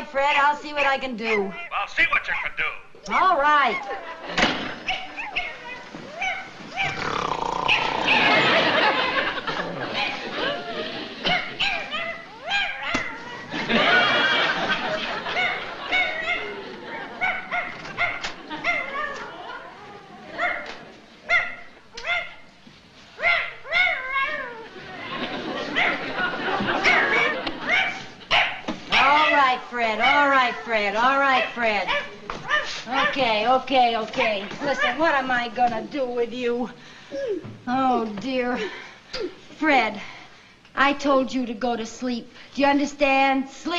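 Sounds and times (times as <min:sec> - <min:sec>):
speech: 0:00.1 - 0:04.7, 0:29.7 - 0:32.1, 0:32.9 - 0:40.1, 0:40.8 - 0:43.7
dog barking and whimpering: 0:01.2 - 0:01.8, 0:03.4 - 0:04.0, 0:04.8 - 0:07.0, 0:11.2 - 0:13.4, 0:15.2 - 0:22.5, 0:23.2 - 0:24.7, 0:26.8 - 0:29.4
laughter: 0:03.6 - 0:05.2, 0:08.0 - 0:11.6, 0:13.1 - 0:21.2, 0:24.7 - 0:28.2.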